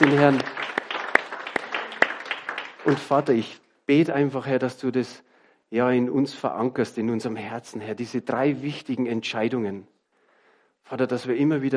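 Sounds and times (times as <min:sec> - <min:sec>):
speech: 0:00.0 - 0:00.6, 0:02.8 - 0:09.9, 0:10.8 - 0:11.7
audience applause: 0:00.0 - 0:03.5.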